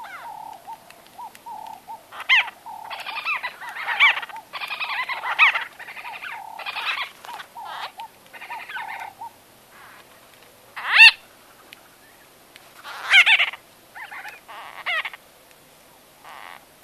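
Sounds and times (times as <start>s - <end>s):
White-fronted bee-eater harsh nasal chattering calls: 0.0s - 10.0s, 10.8s - 11.2s, 12.8s - 15.2s.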